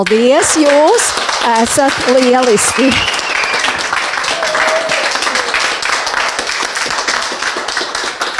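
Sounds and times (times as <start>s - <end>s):
speech: 0.0s - 3.2s
audience applause: 0.0s - 8.3s.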